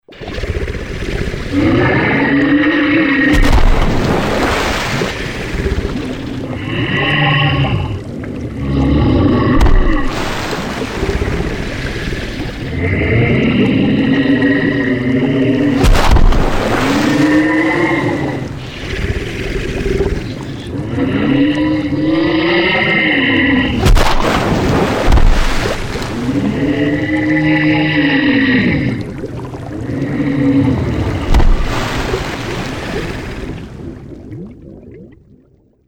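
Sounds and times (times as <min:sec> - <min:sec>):
water monster: 0:00.0 - 0:35.8.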